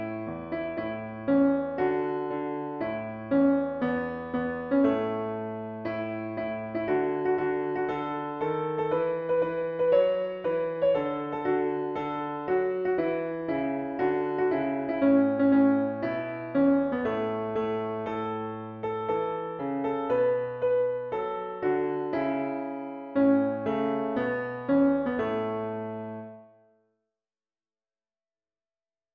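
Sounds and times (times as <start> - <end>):
piano piece: 0.0 - 26.7.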